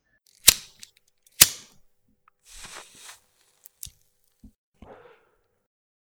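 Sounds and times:
lighting a cigarette: 0:00.3 - 0:01.8, 0:02.5 - 0:04.0.

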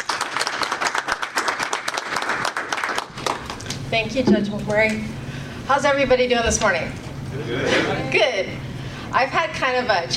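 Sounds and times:
audience applause welcoming a judge to the podium: 0:00.0 - 0:03.6
speech: 0:03.9 - 0:10.1.

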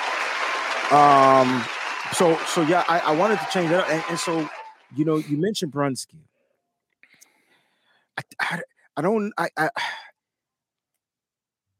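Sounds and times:
audience applause: 0:00.0 - 0:05.2
speech: 0:00.9 - 0:06.3, 0:08.4 - 0:10.0.

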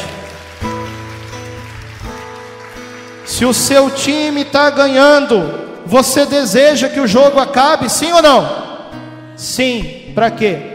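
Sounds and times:
audience applauding loudly: 0:00.0 - 0:04.6
speech: 0:03.4 - 0:08.6, 0:09.4 - 0:10.7.

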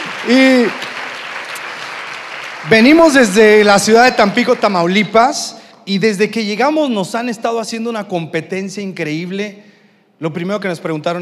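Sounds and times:
audience applause: 0:00.0 - 0:04.7
speech: 0:00.2 - 0:00.9, 0:02.6 - 0:11.1.

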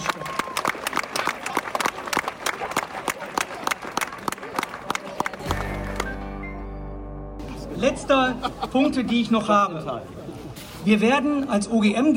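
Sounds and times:
audience applause: 0:00.0 - 0:06.7
laughter: 0:07.5 - 0:10.6
speech: 0:07.8 - 0:10.2, 0:10.8 - 0:12.1.

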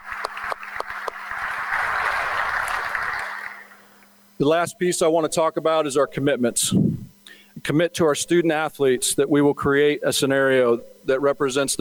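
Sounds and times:
applause: 0:00.0 - 0:04.0
speech: 0:04.4 - 0:07.0, 0:07.6 - 0:11.7.

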